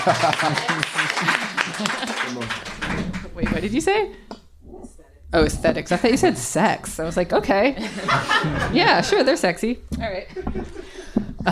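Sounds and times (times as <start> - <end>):
laughter: 0.0 - 2.8, 7.8 - 9.5, 10.1 - 11.5
audience applause: 0.0 - 4.0
speech: 0.0 - 4.3, 5.3 - 11.5.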